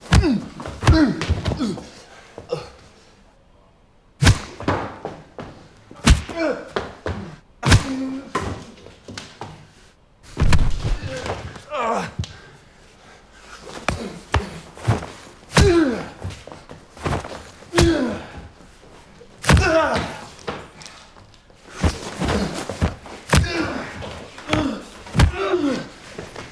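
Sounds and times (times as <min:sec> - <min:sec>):
fight scene sounds: 0:00.0 - 0:01.8, 0:04.2 - 0:05.0, 0:06.0 - 0:08.6, 0:10.3 - 0:12.3, 0:13.7 - 0:18.6, 0:19.4 - 0:20.7, 0:21.8 - 0:26.5.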